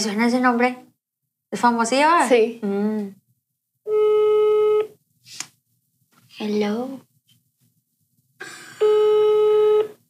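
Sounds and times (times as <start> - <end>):
speech: 0.0 - 0.9, 1.5 - 3.2, 6.4 - 7.1
telephone call tone while dialing: 3.9 - 4.9, 8.8 - 10.0.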